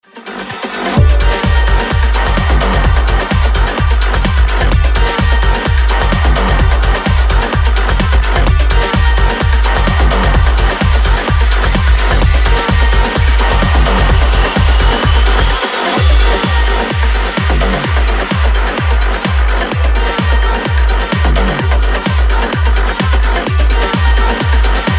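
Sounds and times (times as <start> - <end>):
house music: 0.0 - 24.9.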